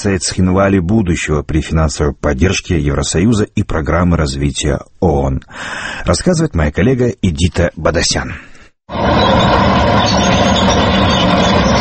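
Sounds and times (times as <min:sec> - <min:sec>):
speech: 0:00.0 - 0:11.4
heavy tank engine roaring: 0:09.0 - 0:11.8.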